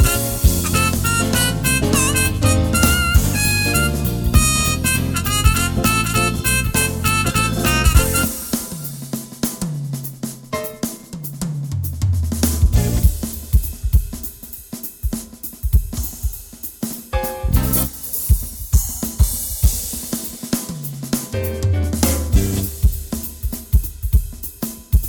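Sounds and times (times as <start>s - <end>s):
bebop jazz: 0.0s - 14.5s, 15.4s - 25.0s.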